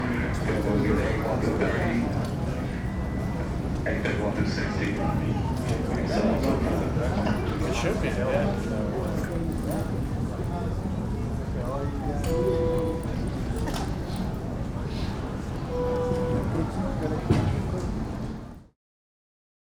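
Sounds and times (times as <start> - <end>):
airport boarding intercom announcement: 0.0 - 18.3
airport crowd walla: 0.0 - 18.5
people and kids talking in an airport terminal in Dallas: 0.0 - 18.5
people eating in an airport terminal: 0.0 - 18.6
airport terminal beeping: 12.3 - 13.4, 15.7 - 16.8.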